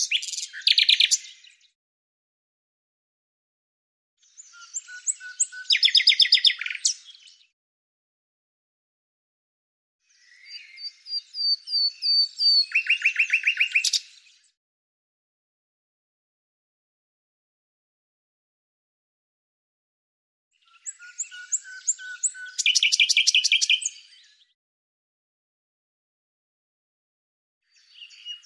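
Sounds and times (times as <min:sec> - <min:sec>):
bird song with scratchy notes and a run of high sharp notes: 0:00.0 - 0:01.8, 0:04.2 - 0:07.6, 0:10.0 - 0:14.6, 0:20.5 - 0:24.6, 0:27.6 - 0:28.4.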